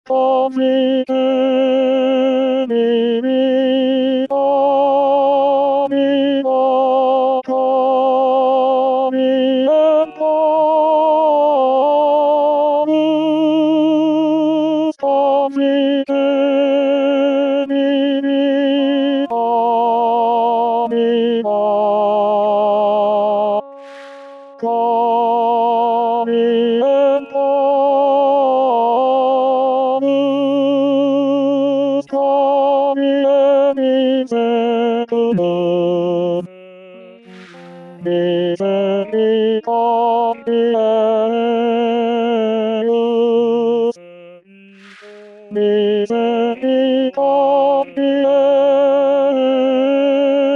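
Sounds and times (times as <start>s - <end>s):
tenor singing in D-flat major: 0.1s - 50.5s.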